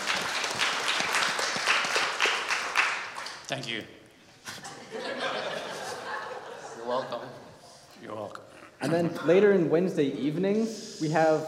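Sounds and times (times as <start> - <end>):
faint applause from a church audience: 0.0 - 3.3
speech: 3.5 - 4.0, 6.9 - 11.4
laughter: 4.5 - 7.6.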